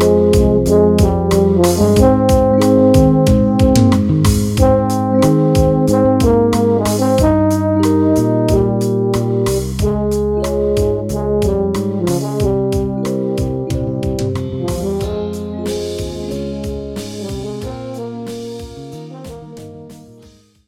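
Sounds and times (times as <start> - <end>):
alto in A-flat major: 0.0 - 20.4.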